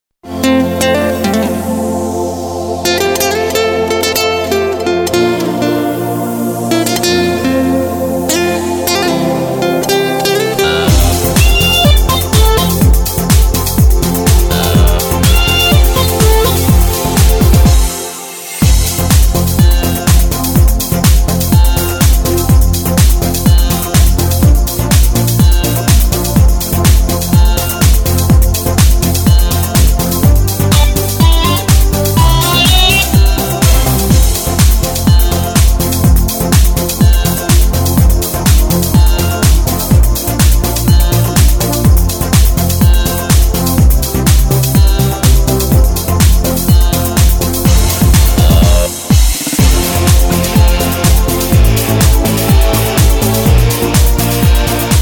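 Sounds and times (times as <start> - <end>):
Korg Pa3X arranger keyboard: 0.3 - 55.0.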